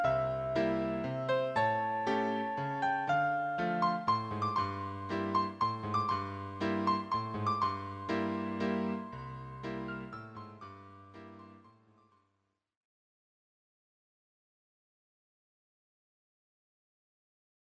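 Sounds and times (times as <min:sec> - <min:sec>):
syncopated waltz music: 0:00.0 - 0:11.7.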